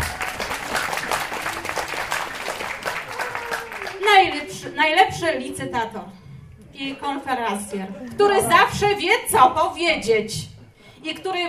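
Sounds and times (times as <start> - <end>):
audience applause: 0.0 - 4.8
speech: 4.1 - 6.2, 6.8 - 11.4.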